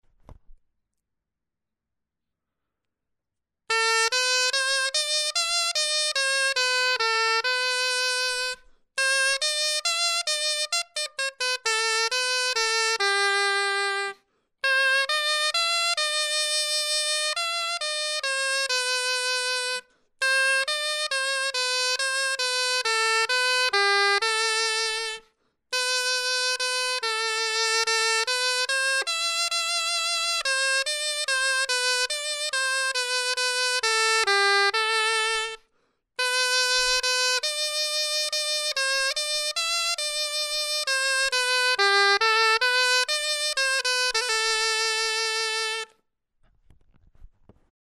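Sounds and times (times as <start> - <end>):
clarinet etude: 3.7 - 46.0.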